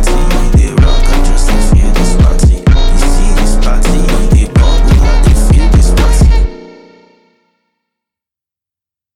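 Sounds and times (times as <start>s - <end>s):
Brazilian phonk party music: 0.0s - 7.1s.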